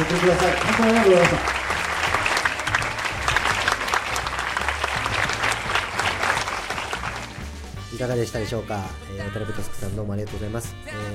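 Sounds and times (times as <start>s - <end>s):
audience applause: 0.0s - 7.7s
speech: 0.1s - 1.6s, 8.0s - 11.1s.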